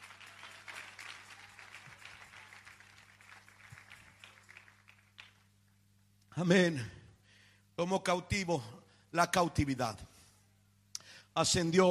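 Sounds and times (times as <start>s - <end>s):
audience applauding: 0.0s - 5.6s
faint low electrical hum: 0.0s - 11.8s
speech: 6.4s - 7.0s, 7.8s - 10.1s, 11.4s - 11.8s.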